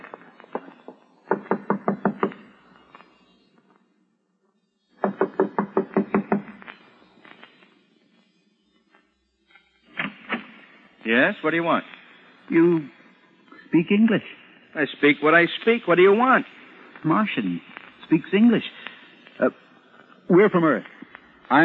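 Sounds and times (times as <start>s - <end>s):
knocking on a door: 1.3s - 2.3s, 5.0s - 6.5s
speech: 11.1s - 11.9s, 12.5s - 13.0s, 13.7s - 18.8s, 19.4s - 19.6s, 20.3s - 20.9s, 21.5s - 21.6s.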